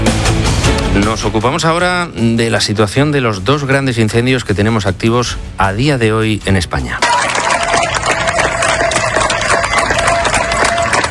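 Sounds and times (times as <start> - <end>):
speech: 1.0 - 7.2
crowd of neighbours applauding: 7.0 - 11.1.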